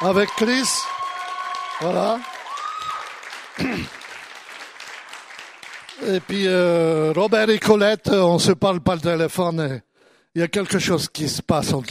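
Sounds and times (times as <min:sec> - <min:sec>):
speech: 0:00.0 - 0:01.0, 0:01.8 - 0:02.3, 0:03.6 - 0:04.0, 0:06.0 - 0:11.8
audience applause: 0:00.0 - 0:07.7.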